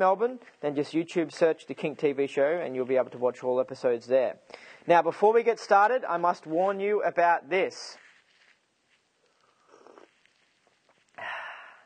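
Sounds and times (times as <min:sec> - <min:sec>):
speech: 0:00.0 - 0:08.0
person sipping hot green tea: 0:08.0 - 0:11.8.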